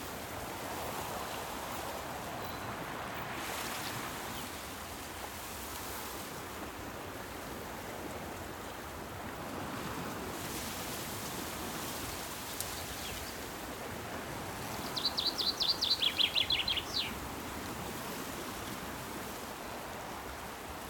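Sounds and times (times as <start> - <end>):
distant sea waves: 0.0 - 20.8
rural summer birdsong: 14.8 - 17.2.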